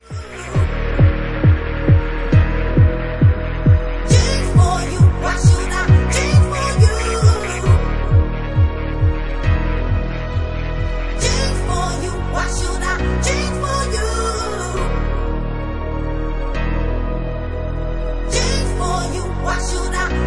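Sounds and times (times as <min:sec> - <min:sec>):
remixed bassline music: 0:00.0 - 0:20.2.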